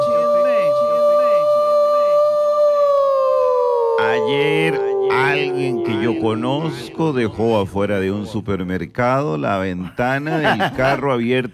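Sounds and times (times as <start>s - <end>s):
voice imitating a siren: 0.0s - 7.7s
laughter: 4.0s - 8.3s, 10.0s - 11.2s
speech: 5.6s - 11.5s.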